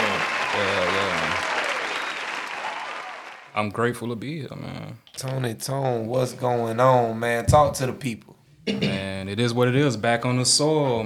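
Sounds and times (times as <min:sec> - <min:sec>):
low voice: 0:00.0 - 0:01.4
crowd applauding: 0:00.0 - 0:03.6
speech: 0:03.6 - 0:11.0.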